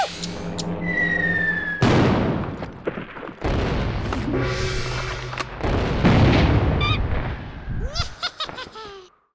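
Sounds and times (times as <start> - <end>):
ambience: 0.1 - 6.5
laughter: 7.8 - 9.1.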